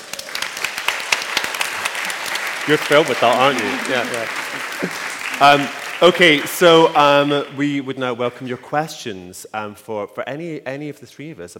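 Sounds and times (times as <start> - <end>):
audience applause: 0.0 - 8.9
laughter: 1.7 - 8.6
speech: 2.7 - 11.5.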